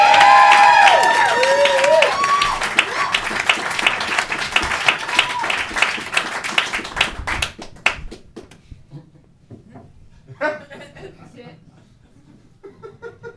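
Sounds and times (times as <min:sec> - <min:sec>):
audience applause: 0:00.0 - 0:08.3
laughter: 0:10.3 - 0:13.3.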